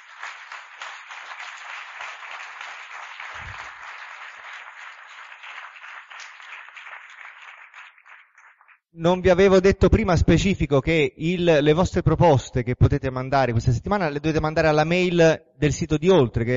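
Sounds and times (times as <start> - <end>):
audience applause: 0.0 - 8.9
speech: 9.0 - 16.5.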